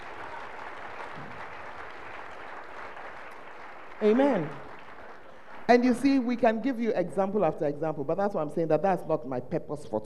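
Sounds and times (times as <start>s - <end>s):
audience clapping: 0.0s - 6.6s
speech: 4.0s - 4.6s, 5.7s - 10.0s.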